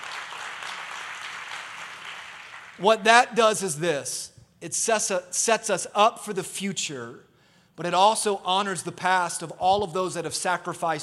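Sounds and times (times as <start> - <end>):
audience applauding: 0.0 - 2.9
speech: 2.8 - 11.0.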